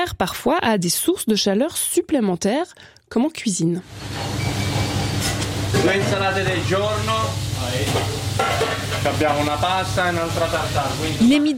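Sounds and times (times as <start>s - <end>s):
speech: 0.0s - 4.6s, 5.2s - 11.5s
guanciale sizzling in a frying pan for carbonara in a restaurant kitchen in Geneva: 3.9s - 11.5s.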